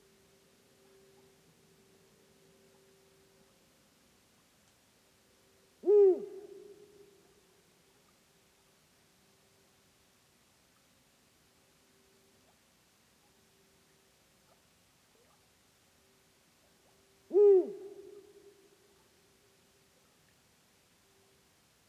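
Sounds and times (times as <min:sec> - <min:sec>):
Bubo bubo eagle owl: 0:05.8 - 0:07.2, 0:17.3 - 0:18.6.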